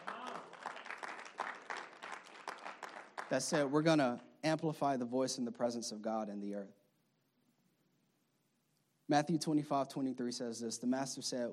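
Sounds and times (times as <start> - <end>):
audience applause: 0.0 - 3.4
speech: 3.3 - 6.8, 9.1 - 11.5.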